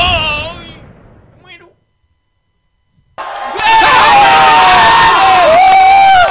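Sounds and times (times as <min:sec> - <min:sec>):
crowd cheering at a basketball game: 0:03.2 - 0:06.3.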